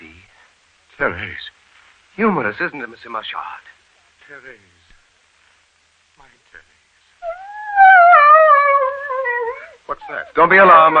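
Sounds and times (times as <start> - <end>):
speech: 1.0 - 1.6, 2.2 - 4.8, 9.9 - 10.9
pet dog howling: 7.2 - 10.9.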